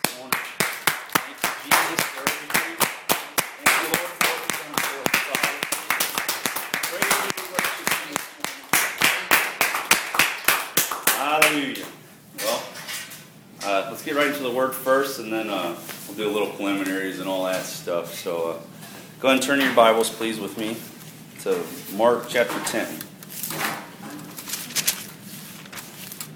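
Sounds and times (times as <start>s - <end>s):
audience hand clapping: 0.0s - 11.7s
speech: 14.0s - 23.1s.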